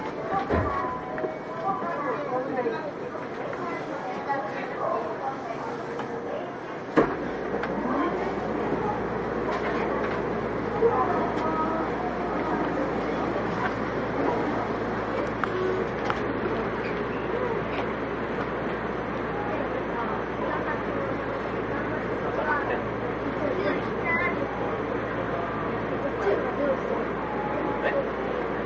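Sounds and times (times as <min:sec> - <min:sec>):
Yokohama Municipal Subway 3000R train rumble and hiss: 0:00.0 - 0:28.6
murmur of voices: 0:00.0 - 0:28.6.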